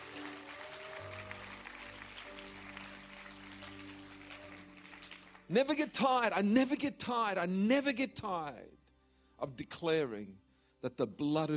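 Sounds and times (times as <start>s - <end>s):
audience clapping: 0.0s - 6.1s
speech: 5.5s - 8.8s, 9.4s - 11.5s.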